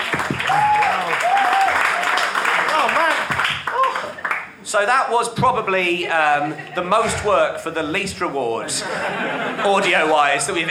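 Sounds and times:
audience applause: 0.0 - 4.6
speech: 4.7 - 10.6
laughter: 5.9 - 7.8, 8.6 - 10.6.

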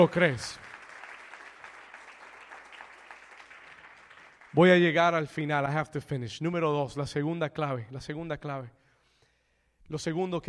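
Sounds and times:
speech: 0.0 - 0.6, 4.5 - 8.8, 9.9 - 10.4
audience applause: 0.0 - 4.9.

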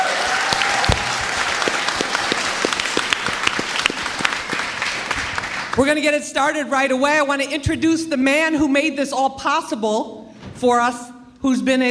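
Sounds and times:
audience round of applause: 0.0 - 5.8
speech: 5.8 - 11.8.

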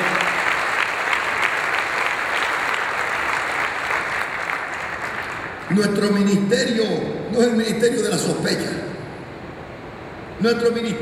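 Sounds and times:
audience applause: 0.0 - 6.0
speech: 5.7 - 8.9, 10.4 - 11.0.

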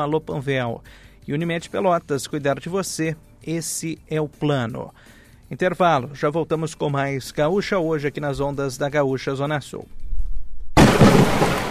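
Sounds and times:
speech: 0.0 - 10.0
thunderstorm thunder crash: 10.8 - 11.6.

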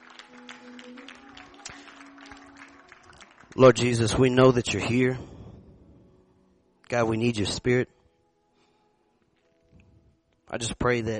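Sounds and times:
audience clapping: 0.0 - 4.8
speech: 3.6 - 5.4, 6.9 - 7.9, 10.6 - 11.1.

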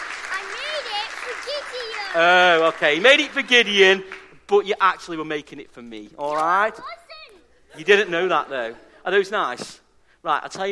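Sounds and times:
round of applause clapping: 0.0 - 3.5
speech: 1.5 - 7.0, 7.7 - 10.7
laughter: 7.7 - 9.3.

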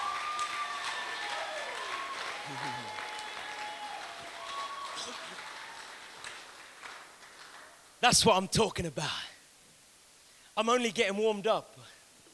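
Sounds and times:
audience shouting praise: 0.0 - 6.0
audience clapping in praise: 0.0 - 8.0
speech: 2.5 - 3.0, 5.0 - 5.5, 8.0 - 9.3, 10.6 - 11.9.

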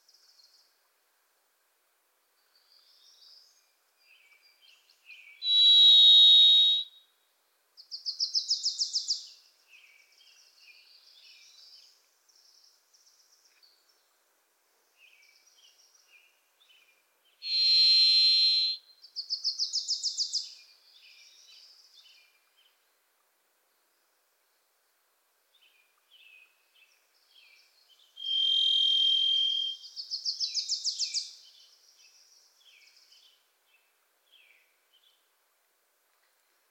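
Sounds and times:
varied thrush buzzy whistle: 5.5 - 6.9, 17.5 - 18.8, 28.2 - 29.8.

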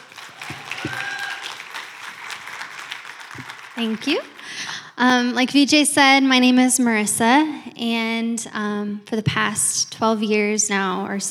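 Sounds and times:
audience applause: 0.0 - 4.7
speech: 3.8 - 4.3, 5.0 - 11.2.

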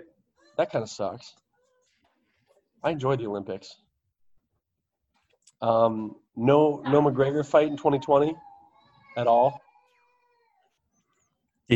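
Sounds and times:
speech: 0.6 - 1.4, 2.8 - 3.8, 5.6 - 8.5, 9.2 - 9.6
child screaming: 7.8 - 10.8.

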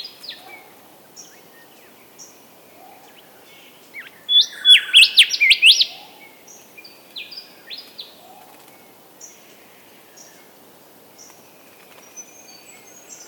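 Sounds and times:
early morning bird chorus near Dayboro in SE Queensland: 0.0 - 10.6, 11.2 - 13.2
faint low hiss: 0.0 - 13.2
bird singing bright rising notes: 4.3 - 6.0.

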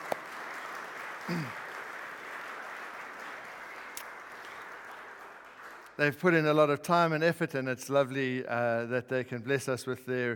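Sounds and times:
audience applause: 0.0 - 6.1
speech: 1.3 - 1.6, 6.0 - 10.3.

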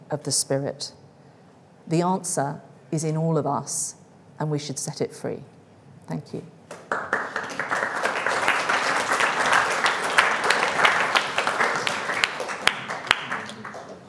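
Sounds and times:
speech: 0.1 - 1.0, 1.9 - 7.1
audience applause: 6.7 - 14.0.

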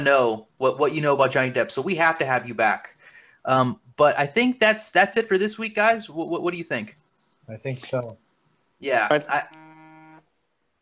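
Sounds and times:
speech: 0.0 - 8.2, 8.8 - 9.6
buzzer sound effect: 9.4 - 10.2.

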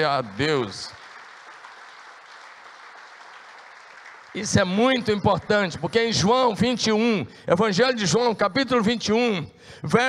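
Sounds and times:
speech: 0.0 - 1.0, 4.4 - 10.0
audience applauding: 0.0 - 6.5.

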